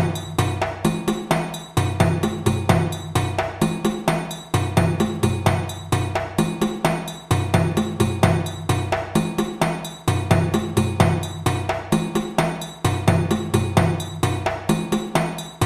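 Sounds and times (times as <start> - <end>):
rapid djembe groove: 0.0 - 15.6.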